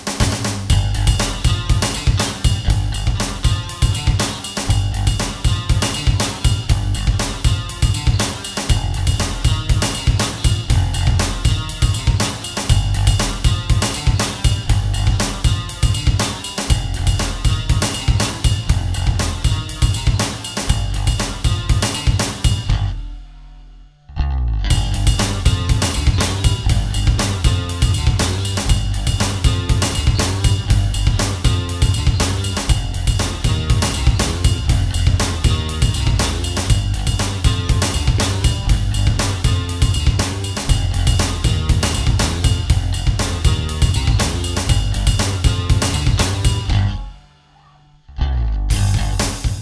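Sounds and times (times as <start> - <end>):
musical riff: 0.3 - 49.5.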